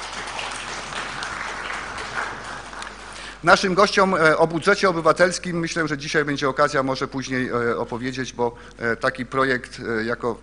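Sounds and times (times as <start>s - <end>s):
audience applause: 0.0s - 3.4s
speech: 3.4s - 10.4s.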